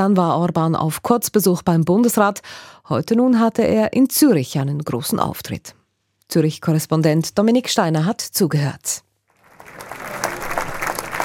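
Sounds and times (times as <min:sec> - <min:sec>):
speech: 0:00.0 - 0:09.1
audience applause in a standing ovation: 0:09.4 - 0:11.2.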